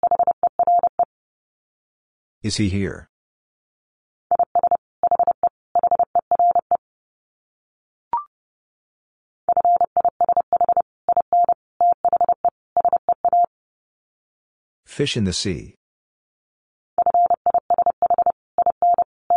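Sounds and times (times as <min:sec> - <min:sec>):
Morse code tones at 30 words per minute: 0:00.0 - 0:01.1, 0:04.3 - 0:06.8, 0:09.5 - 0:13.5, 0:17.0 - 0:19.3
speech: 0:02.4 - 0:03.1, 0:15.0 - 0:15.8.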